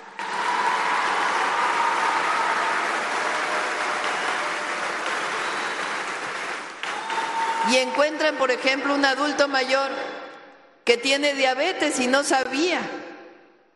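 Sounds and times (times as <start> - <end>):
audience applause: 0.0 - 8.0
speech: 7.7 - 10.2, 10.9 - 13.0.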